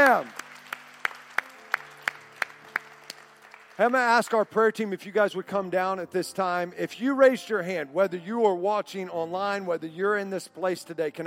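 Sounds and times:
audience applause: 0.0s - 4.6s
speech: 3.8s - 11.2s.

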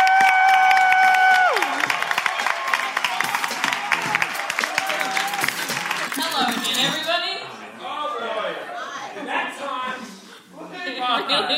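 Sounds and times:
audience applause: 0.0s - 7.1s
laughter: 5.0s - 7.1s, 8.6s - 11.5s.

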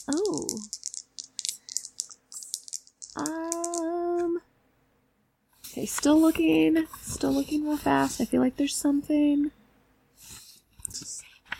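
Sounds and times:
speech: 0.0s - 0.8s, 5.8s - 9.6s
dice rolling: 0.0s - 4.3s.

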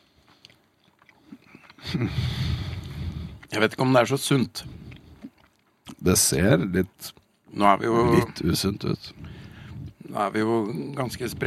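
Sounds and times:
person biting and chewing pastry: 0.0s - 3.8s, 4.6s - 6.0s, 7.1s - 8.5s
speech: 1.9s - 2.5s, 3.5s - 4.8s, 6.0s - 9.2s, 10.1s - 11.4s.

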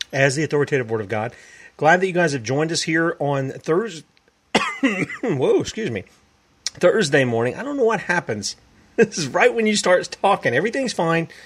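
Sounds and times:
speech: 0.1s - 4.1s, 4.8s - 11.4s
host coughing and clearing the throat: 4.6s - 5.4s, 9.1s - 9.4s.

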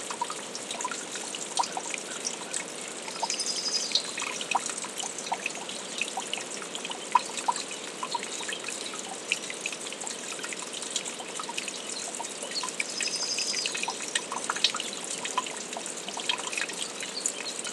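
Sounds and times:
brookside nature sounds: 0.0s - 17.7s.

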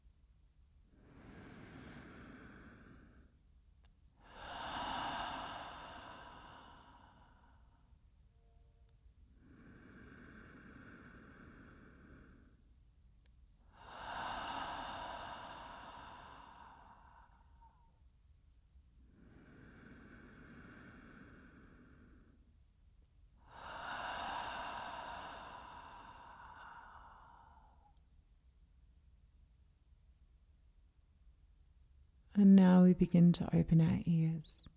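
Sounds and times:
slow breathing in through the nose and out through the mouth: 0.9s - 3.6s, 4.2s - 8.0s, 9.3s - 12.9s, 13.6s - 18.1s, 19.0s - 22.6s, 23.4s - 28.1s
speech: 32.4s - 34.7s.

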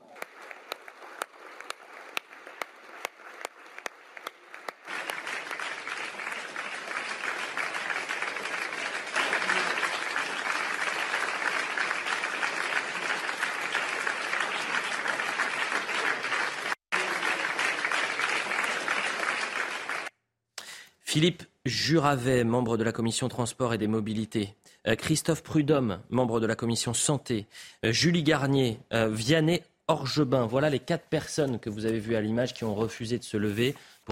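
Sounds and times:
sustained applause from a large crowd: 0.0s - 20.1s
speech: 21.2s - 34.1s.

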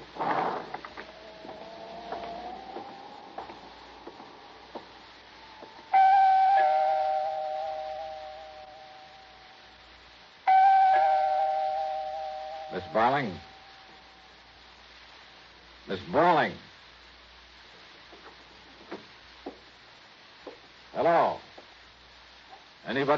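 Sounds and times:
faint clicks and shuffling: 0.0s - 5.9s, 17.7s - 19.8s
apartment doorbell ringing: 5.8s - 9.4s, 10.5s - 14.1s
speech: 12.9s - 13.5s, 15.9s - 16.7s, 23.0s - 23.1s.

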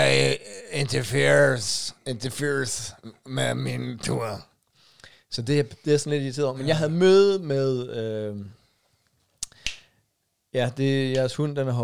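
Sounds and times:
speech: 0.2s - 4.5s, 5.3s - 8.6s, 10.5s - 11.8s
finger snaps: 9.4s - 9.9s.

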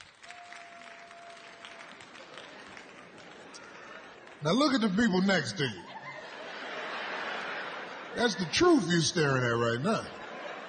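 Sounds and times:
audience clapping hands: 0.0s - 5.3s
laughter: 2.3s - 10.6s
speech: 4.4s - 5.9s, 8.2s - 10.2s.

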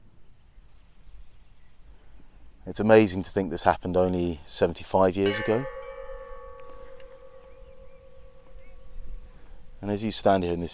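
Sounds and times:
wind: 0.0s - 10.7s
speech: 2.6s - 5.8s, 9.8s - 10.7s
bells tolling: 5.2s - 9.8s.

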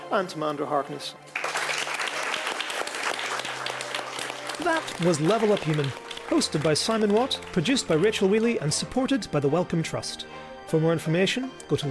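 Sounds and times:
speech: 0.1s - 1.4s, 4.6s - 11.8s
audience applause at the Royal Institution after a live science event: 1.3s - 8.3s.

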